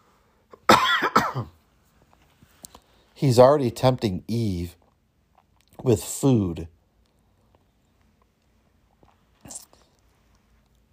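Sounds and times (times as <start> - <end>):
person coughing: 0.5 - 1.6
speech: 1.4 - 1.6, 3.2 - 4.8, 5.8 - 6.8.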